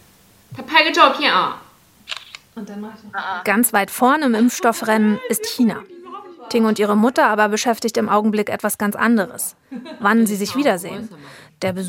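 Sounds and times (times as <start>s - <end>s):
speech: 0.8s - 1.6s, 2.6s - 11.8s
camera shutter click: 2.0s - 2.5s
laughter: 4.2s - 7.7s, 9.7s - 11.2s.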